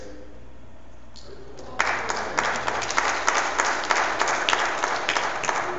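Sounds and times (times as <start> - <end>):
applause for an anniversary: 1.6 - 5.7.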